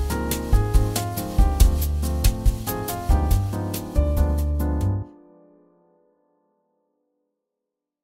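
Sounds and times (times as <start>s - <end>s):
bossa nova music: 0.0s - 5.1s.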